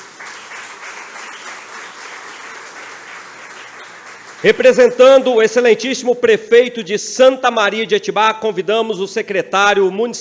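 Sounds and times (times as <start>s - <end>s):
audience applause: 0.0s - 5.4s
speech: 4.4s - 10.1s.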